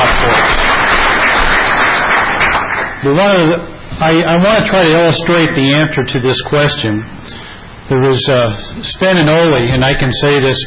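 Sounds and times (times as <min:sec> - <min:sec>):
audience applause: 0:00.0 - 0:03.0
speech: 0:03.0 - 0:10.6.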